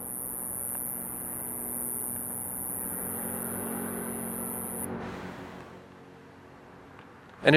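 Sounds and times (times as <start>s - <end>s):
loud cicadas chirping: 0.0s - 4.9s.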